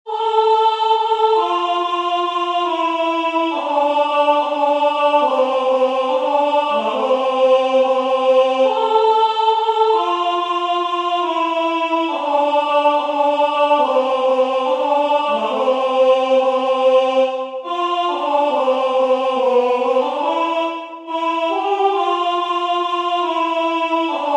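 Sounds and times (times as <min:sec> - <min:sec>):
alto singing a carol: 0:00.1 - 0:24.3.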